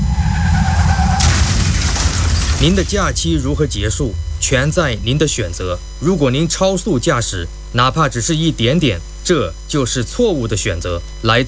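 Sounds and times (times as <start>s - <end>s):
car tyre screech skidding, road safety advert sound effect: 0.0s - 3.3s
car crash impact, road safety advert sound effect: 0.0s - 6.2s
speech: 2.6s - 11.4s.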